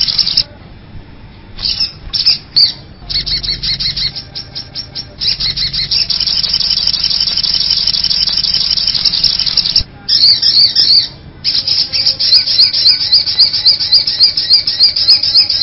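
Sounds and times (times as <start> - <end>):
little spiderhunter calling with rapid high chirps: 0.0 - 0.4, 1.6 - 15.6.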